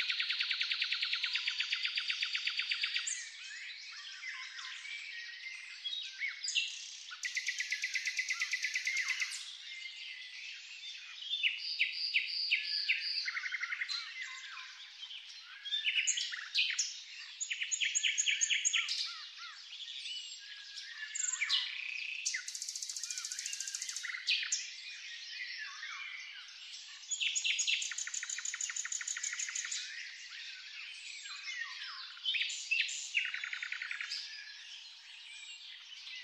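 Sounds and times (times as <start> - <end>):
birds: 0.0 - 36.2.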